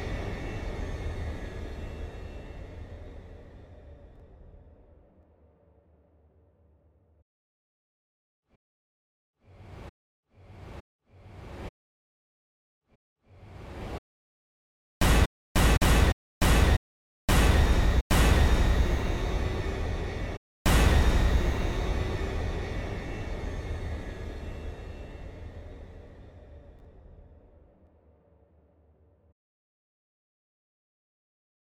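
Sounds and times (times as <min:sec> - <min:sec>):
riser and hit: 0:15.0 - 0:23.3.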